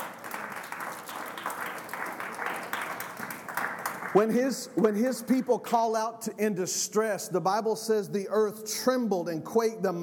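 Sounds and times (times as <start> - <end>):
audience clapping hands in praise: 0.0 - 4.9
speech: 4.1 - 10.0.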